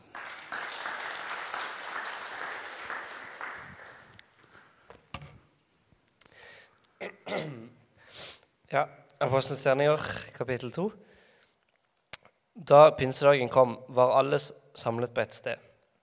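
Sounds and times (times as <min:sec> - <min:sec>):
audience applause: 0:00.0 - 0:04.6
speech: 0:07.3 - 0:07.6, 0:08.7 - 0:11.0, 0:12.7 - 0:15.7.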